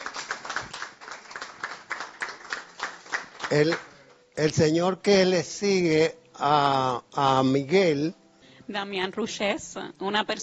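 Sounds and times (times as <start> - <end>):
applause for a guest: 0.0 - 4.2
speech: 3.5 - 10.4.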